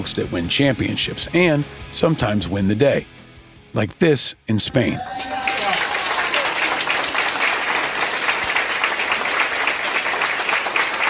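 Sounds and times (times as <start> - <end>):
speech: 0.0 - 5.4
standing ovation by doctors and nurses at a hospital in Spain: 5.2 - 11.0.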